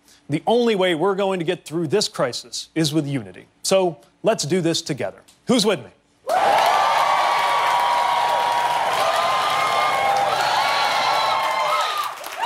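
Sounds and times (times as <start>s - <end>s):
speech: 0.3s - 6.0s
canned crowd cheering sound effect on a comedy show: 6.3s - 12.4s.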